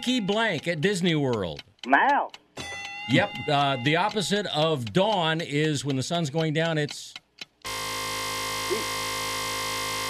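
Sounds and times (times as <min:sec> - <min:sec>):
speech: 0:00.0 - 0:02.4, 0:03.1 - 0:07.2, 0:08.7 - 0:09.0
game show buzzer: 0:07.7 - 0:10.0.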